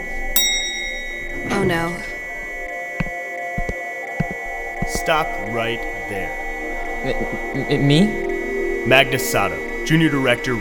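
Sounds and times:
alarm ringing: 0.4s - 2.0s
speech: 1.6s - 2.1s, 5.0s - 6.4s, 7.0s - 10.5s.

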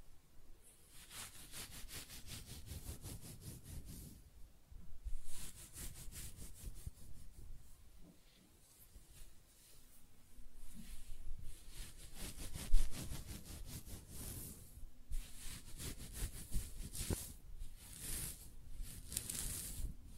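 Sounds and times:
hair scratching and brushing strokes: 0.7s - 4.2s, 5.2s - 7.8s, 10.6s - 20.1s
sharp scrape: 0.9s - 4.1s, 11.7s - 20.0s.

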